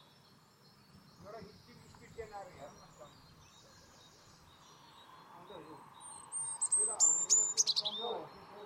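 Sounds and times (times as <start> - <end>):
European robin singing: 0.0 - 8.6.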